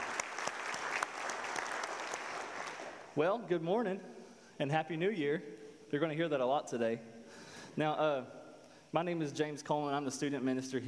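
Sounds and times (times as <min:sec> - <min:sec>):
audience applause: 0:00.0 - 0:03.1
speech: 0:03.2 - 0:10.8.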